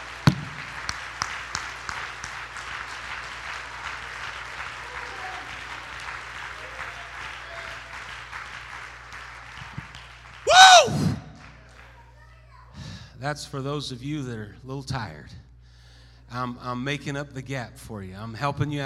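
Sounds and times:
audience clapping: 0.0s - 12.0s
speech: 13.2s - 15.5s, 16.3s - 18.8s.

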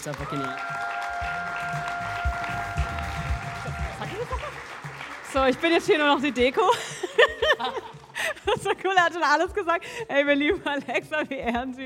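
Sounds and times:
speech: 0.0s - 0.8s, 5.3s - 11.8s
audience applause: 0.0s - 8.2s
laughter: 3.8s - 4.7s, 6.6s - 9.0s.

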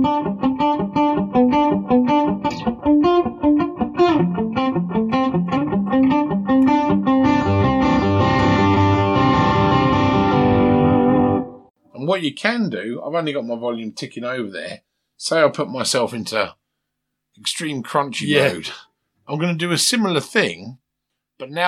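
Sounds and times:
muted electric guitar picking notes and a distorted chord: 0.0s - 11.4s
speech: 12.2s - 16.6s, 17.4s - 20.8s, 21.4s - 21.6s.

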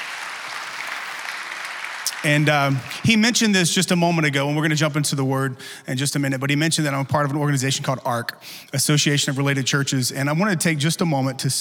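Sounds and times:
audience clapping: 0.0s - 3.9s
speech: 2.2s - 11.5s.

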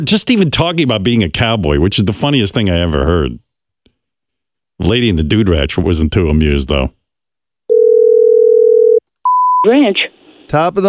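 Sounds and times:
speech: 0.0s - 3.4s, 4.8s - 7.0s, 9.6s - 10.8s
telephone dial tone: 7.7s - 9.5s.

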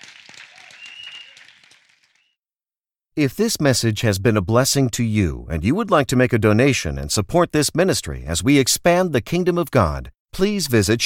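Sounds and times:
audience clapping: 0.0s - 2.4s
speech: 3.2s - 11.0s.

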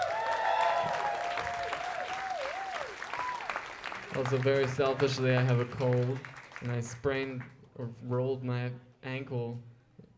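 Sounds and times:
audience applause: 0.0s - 7.4s
speech: 4.2s - 9.7s.

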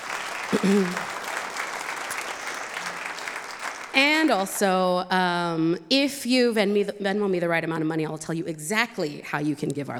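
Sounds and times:
audience applause: 0.0s - 4.0s
speech: 0.5s - 1.1s, 3.9s - 9.9s.

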